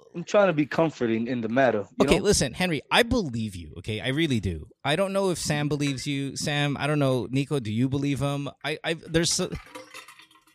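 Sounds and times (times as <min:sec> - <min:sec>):
speech: 0:00.2 - 0:09.8
ice cubes rattling in a Yeti with a little water: 0:09.6 - 0:10.5.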